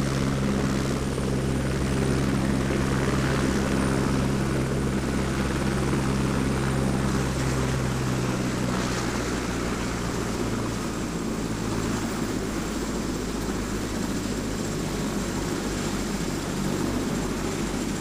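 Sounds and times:
helicopter approaching, landing and leaving: 0.0s - 17.9s.

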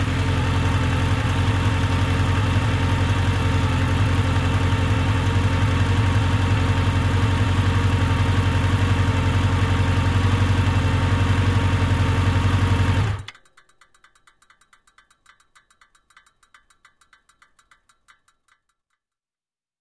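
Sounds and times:
motorcycle approaching and turning off: 0.0s - 13.3s.

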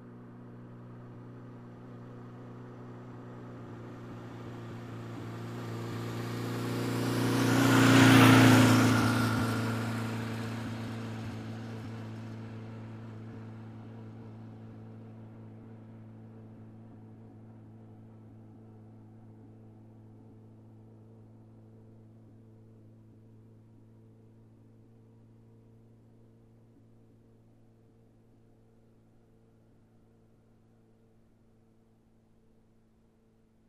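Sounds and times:
motorcycle passing by: 1.0s - 14.4s.

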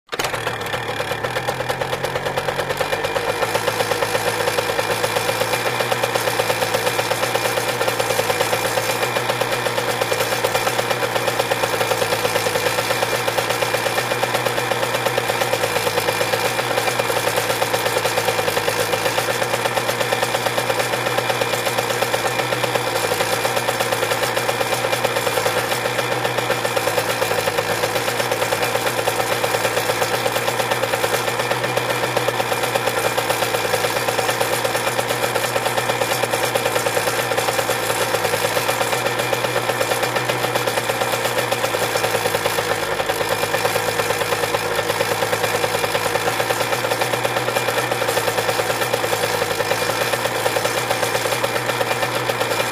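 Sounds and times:
motorcycle engine starting, idling and turning off: 0.0s - 52.7s.

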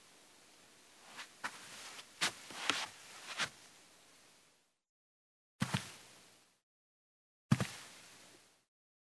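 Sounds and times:
steps in shoes on a carpeted wooden floor: 1.1s - 3.6s.

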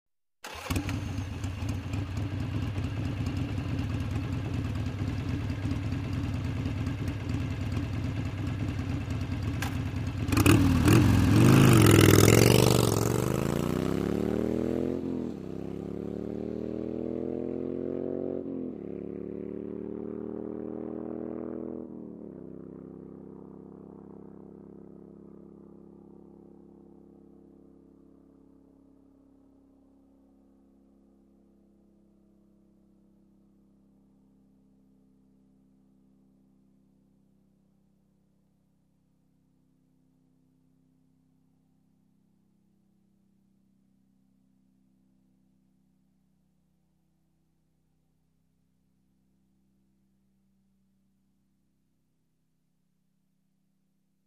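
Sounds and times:
motorcycle starting, idling and driving away: 0.4s - 29.0s.

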